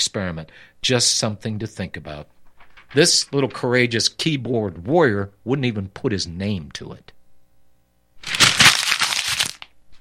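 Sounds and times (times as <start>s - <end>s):
speech: 0.1s - 7.2s
sheet of paper being crumpled into a ball: 8.2s - 9.9s.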